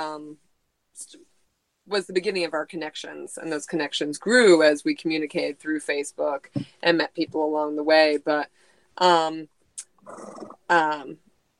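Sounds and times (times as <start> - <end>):
speech: 0.0 - 11.2
horse breathy rasping snort: 10.0 - 10.6.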